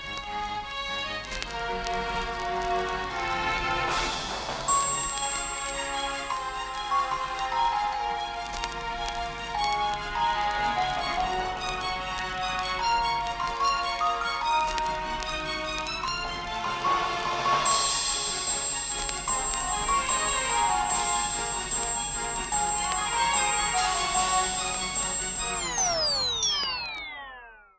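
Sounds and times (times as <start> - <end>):
classic gramophone music: 0.1 - 27.5.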